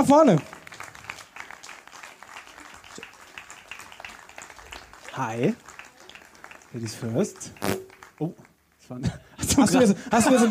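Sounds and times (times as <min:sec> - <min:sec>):
speech: 0:00.0 - 0:00.5, 0:05.2 - 0:05.7, 0:06.7 - 0:10.4
audience applause: 0:00.0 - 0:08.4
laughter: 0:09.4 - 0:10.4.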